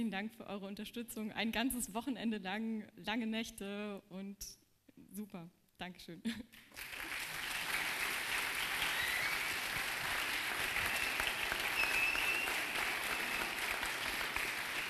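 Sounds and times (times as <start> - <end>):
speech: 0.0 - 7.0
warm audience applause: 6.7 - 14.8.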